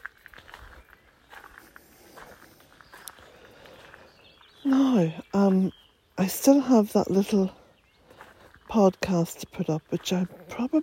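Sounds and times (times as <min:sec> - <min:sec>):
footsteps of someone walking outdoors around to the front: 0:00.0 - 0:10.8
speech: 0:04.6 - 0:07.6, 0:08.7 - 0:10.8.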